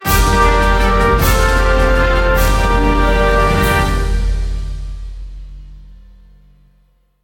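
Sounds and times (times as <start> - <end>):
big orchestral losing fanfare: 0.0 - 5.4.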